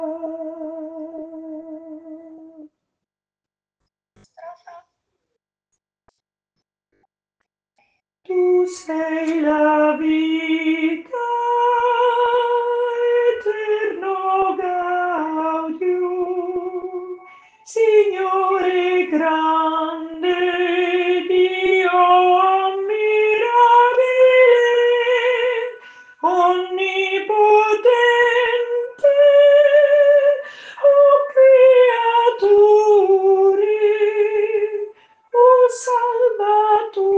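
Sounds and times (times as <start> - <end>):
soprano voices singing: 8.3 - 37.1.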